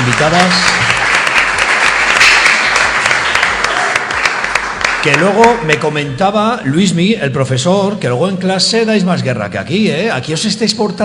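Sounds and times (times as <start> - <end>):
audience applause: 0.0 - 5.8
speech: 0.2 - 0.8, 5.0 - 11.0.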